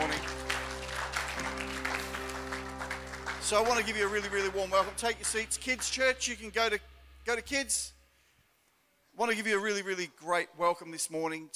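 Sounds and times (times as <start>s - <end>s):
church audience applause for the performers: 0.0s - 6.0s
sustained low tone: 0.0s - 8.2s
speech: 3.5s - 8.0s, 9.2s - 11.5s.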